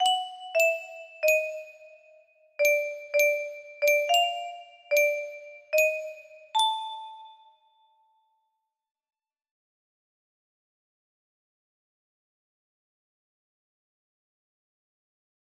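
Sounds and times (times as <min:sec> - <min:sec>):
music box melody: 0:00.0 - 0:07.8.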